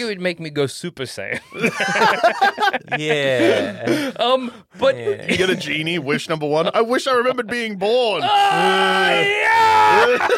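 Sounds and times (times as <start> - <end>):
speech: 0.0 - 10.3
laughter: 1.4 - 4.2, 4.8 - 6.0, 9.2 - 10.3
human growl turning into a scream: 8.2 - 10.2.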